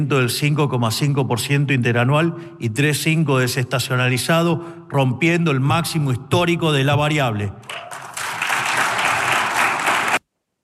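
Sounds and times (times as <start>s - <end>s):
speech: 0.0s - 8.0s
audience applause: 7.7s - 10.2s.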